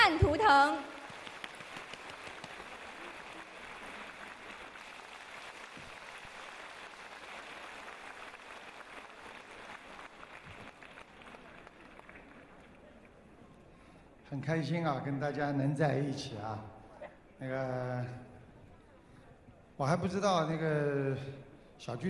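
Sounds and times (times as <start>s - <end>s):
sustained applause from a large audience: 0.5s - 13.2s
speech: 14.3s - 16.8s, 17.4s - 18.3s, 19.8s - 22.0s.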